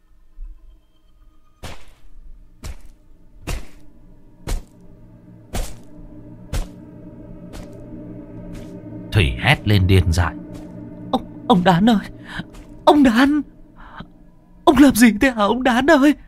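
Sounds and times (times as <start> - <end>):
knife chopping down: 3.5 - 3.8, 5.5 - 5.9
speech: 9.2 - 10.4, 11.5 - 13.5, 14.8 - 16.2.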